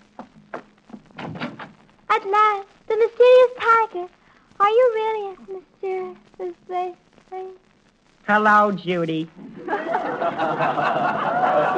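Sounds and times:
door being opened: 0:00.9 - 0:01.8
speech: 0:02.2 - 0:11.7
laughter: 0:09.4 - 0:11.7.

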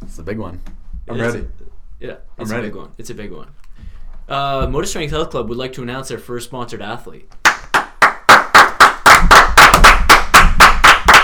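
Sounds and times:
speech: 0:00.2 - 0:03.6, 0:04.3 - 0:07.4
loud clapping applause: 0:07.4 - 0:11.2.

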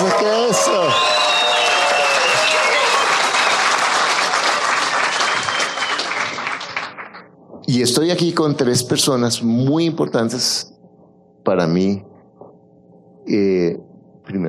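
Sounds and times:
applause: 0:00.0 - 0:07.3
speech: 0:07.7 - 0:10.7, 0:11.4 - 0:12.1, 0:13.3 - 0:14.4.

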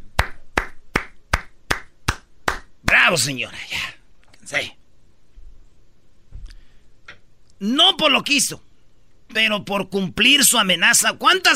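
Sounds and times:
hand clapping: 0:00.0 - 0:03.0
speech: 0:03.1 - 0:04.8, 0:07.6 - 0:08.7, 0:09.3 - 0:11.5.

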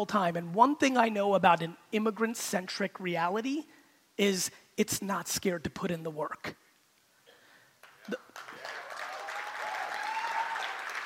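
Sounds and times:
speech: 0:00.0 - 0:06.6
audience applause: 0:07.8 - 0:11.0.

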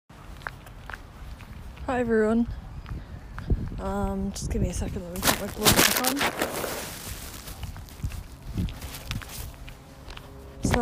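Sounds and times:
footsteps of a person walking outdoors in freezing weather: 0:00.1 - 0:01.9, 0:04.8 - 0:10.7
speech: 0:01.9 - 0:02.6, 0:03.8 - 0:06.9.

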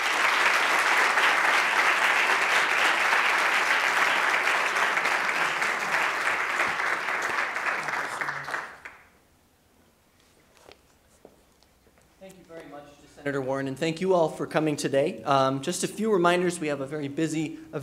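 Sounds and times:
crowd applause: 0:00.0 - 0:09.1
speech: 0:13.3 - 0:17.8.

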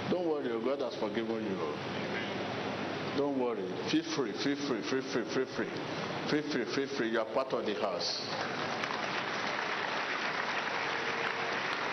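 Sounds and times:
speech: 0:00.1 - 0:02.3, 0:03.2 - 0:08.6
audience clapping: 0:08.3 - 0:11.9.

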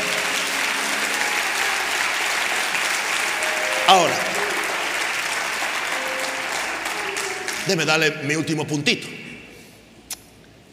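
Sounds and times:
audience applause: 0:00.0 - 0:08.0
speech: 0:03.9 - 0:04.2, 0:07.7 - 0:09.2.

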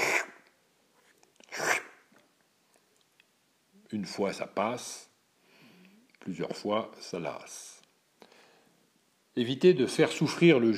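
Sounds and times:
person sucking in air through the nose: 0:00.0 - 0:00.4, 0:01.5 - 0:02.0
faint clicks and small mouth noises: 0:00.0 - 0:00.6, 0:01.2 - 0:03.3
speech: 0:03.9 - 0:05.1, 0:06.3 - 0:07.8, 0:09.4 - 0:10.7.

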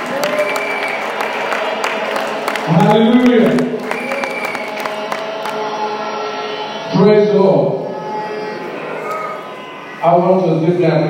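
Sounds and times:
audience clapping: 0:00.0 - 0:05.8
speech: 0:02.7 - 0:03.8, 0:07.0 - 0:07.7, 0:10.0 - 0:11.0.

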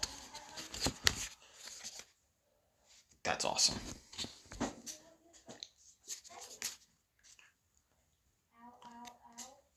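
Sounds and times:
cards being drawn during a game of Pandemic: 0:00.0 - 0:02.1, 0:06.1 - 0:07.5
speech: 0:03.4 - 0:04.0.

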